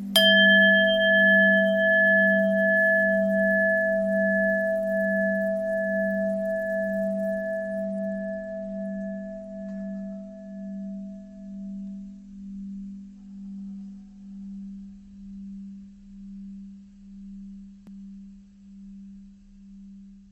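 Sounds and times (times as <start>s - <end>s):
long bell ringing: 0.2s - 10.9s.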